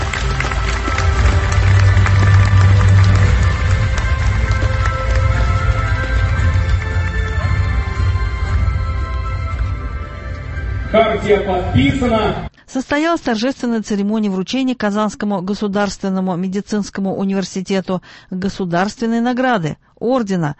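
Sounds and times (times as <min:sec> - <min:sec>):
audience applause at a ceremony: 0:00.0 - 0:09.7
speech: 0:11.2 - 0:20.5.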